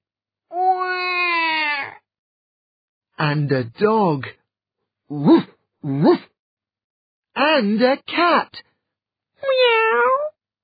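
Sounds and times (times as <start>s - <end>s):
baby crying: 0.5s - 2.0s
speech: 3.2s - 4.4s, 5.1s - 6.3s, 7.4s - 8.7s, 9.4s - 10.3s.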